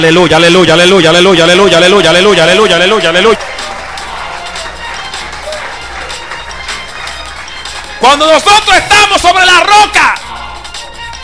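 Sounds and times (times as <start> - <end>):
speech: 0.0 - 3.6, 8.0 - 10.2
large crowd clapping loudly in praise to Jehovah: 2.9 - 9.1.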